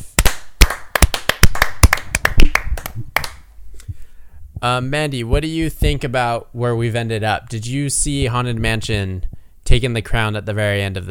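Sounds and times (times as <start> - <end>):
several pairs of hands clapping: 0.0 - 3.5
speech: 4.6 - 11.0.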